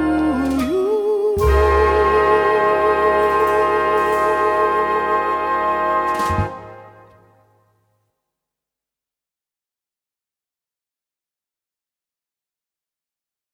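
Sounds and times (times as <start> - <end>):
swing Christmas music: 0.0 - 7.9.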